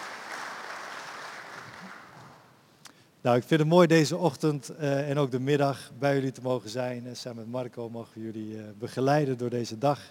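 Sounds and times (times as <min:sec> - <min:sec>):
audience applause: 0:00.0 - 0:02.4
speech: 0:03.2 - 0:10.0.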